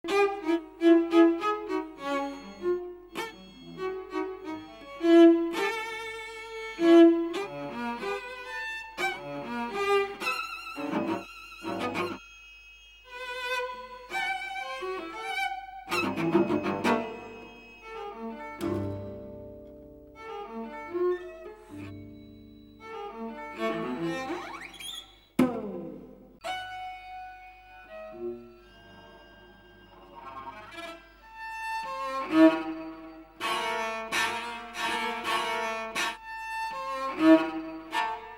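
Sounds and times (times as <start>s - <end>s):
classical music: 0.0s - 38.3s.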